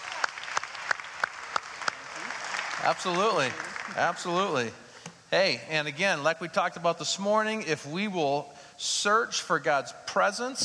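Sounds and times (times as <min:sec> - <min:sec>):
audience applause: 0:00.0 - 0:04.6
speech: 0:02.8 - 0:10.6.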